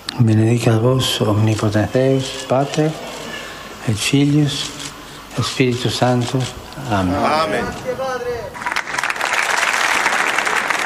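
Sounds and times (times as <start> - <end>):
speech: 0.2 - 3.1, 3.9 - 4.8, 5.4 - 8.7
audience applause at papal audience: 8.6 - 10.8.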